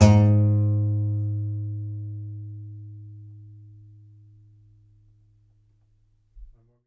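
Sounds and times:
contrabass balalaika plucked strings: 0:00.0 - 0:05.4.

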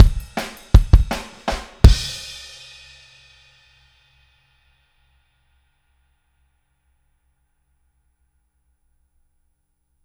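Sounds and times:
outro kick drum at 162 BPM: 0:00.0 - 0:02.2.

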